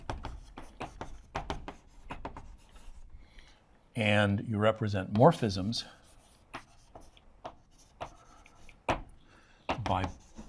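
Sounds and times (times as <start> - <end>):
writing diagrams on a board: 0.0 - 3.1, 5.2 - 9.1, 9.7 - 10.4
speech: 4.0 - 6.0.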